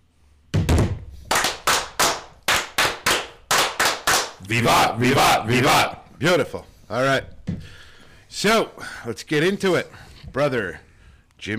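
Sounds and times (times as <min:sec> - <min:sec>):
ritual battery of clapping by lodge brethren: 0:00.7 - 0:04.4
speech: 0:04.5 - 0:10.8, 0:11.4 - 0:11.5.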